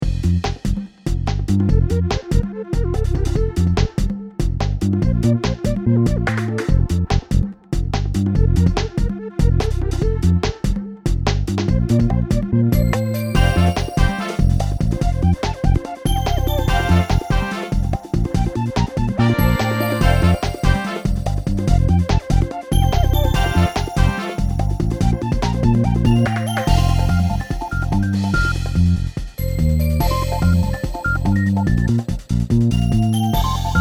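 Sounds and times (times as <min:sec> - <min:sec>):
level music: 0:00.0 - 0:33.8.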